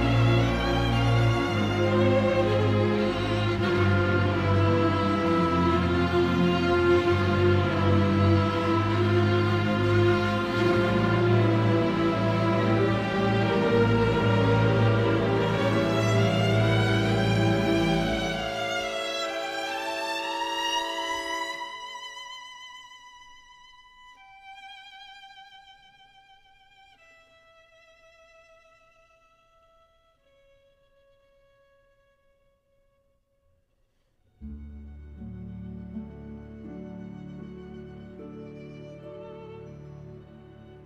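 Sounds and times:
orchestra playing: 0.0 - 22.4, 34.4 - 40.8
solo violin: 0.0 - 33.0, 34.3 - 40.8.

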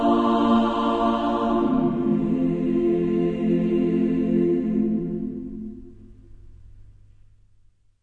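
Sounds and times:
women's choir singing a 16th century setting: 0.0 - 5.8.

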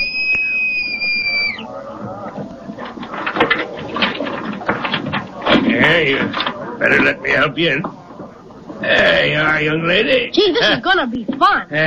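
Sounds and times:
boatswain's pipe whistle: 0.0 - 1.7
busy noisy background: 0.0 - 11.8
speech: 6.0 - 8.0, 8.8 - 11.8.

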